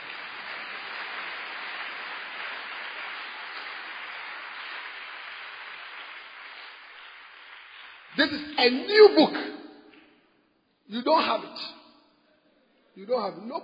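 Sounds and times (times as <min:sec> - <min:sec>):
audience clapping: 0:00.0 - 0:10.3
speech: 0:08.1 - 0:09.6, 0:10.9 - 0:11.8, 0:13.0 - 0:13.6.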